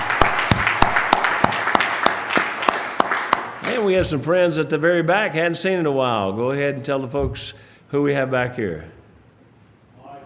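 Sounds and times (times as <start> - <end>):
audience applause welcoming guests at a church service: 0.0 - 3.9
speech: 3.9 - 9.0.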